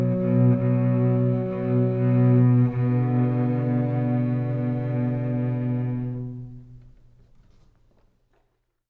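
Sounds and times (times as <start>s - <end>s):
two cellos playing an andante duo: 0.0s - 7.0s.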